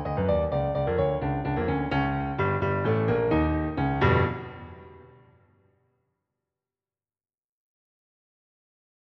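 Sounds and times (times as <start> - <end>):
piano prelude: 0.0 - 5.7.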